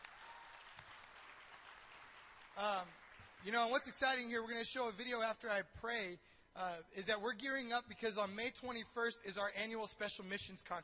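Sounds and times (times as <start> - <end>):
audience clapping: 0.0 - 4.3
speech: 2.6 - 10.8.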